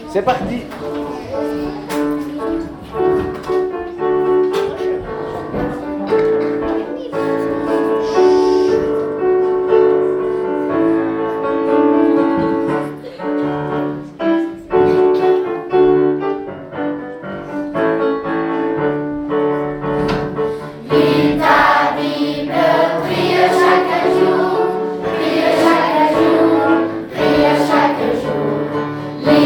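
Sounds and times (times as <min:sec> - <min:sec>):
children: 0:00.0 - 0:29.4.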